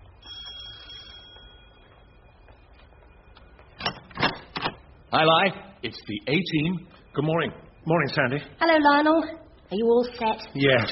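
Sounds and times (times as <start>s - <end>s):
doorbell ringing: 0.2s - 2.1s
speech: 5.1s - 10.9s.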